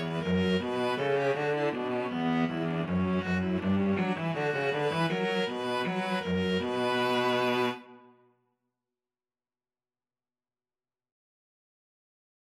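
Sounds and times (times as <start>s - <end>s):
string trio playing a bourree: 0.0s - 8.0s.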